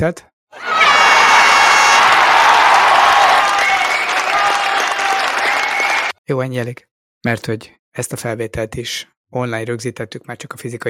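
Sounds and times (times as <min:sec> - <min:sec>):
speech: 0:00.0 - 0:00.7, 0:06.3 - 0:10.8
applause: 0:00.6 - 0:06.2.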